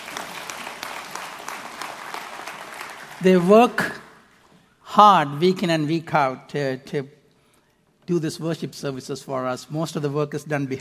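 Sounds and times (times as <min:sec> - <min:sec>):
round of applause: 0:00.0 - 0:04.3
speech: 0:03.2 - 0:04.0, 0:05.0 - 0:07.2, 0:08.1 - 0:10.7.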